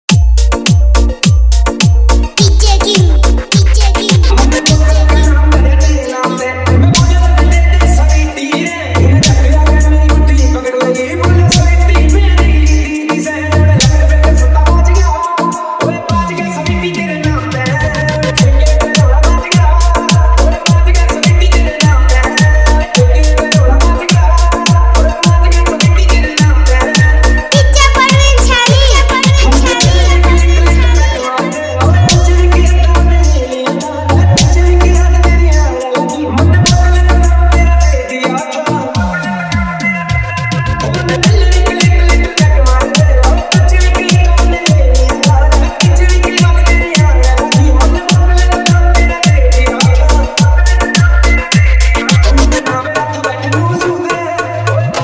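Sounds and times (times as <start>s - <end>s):
DJ remix with high bass vibration: 0.1s - 55.0s.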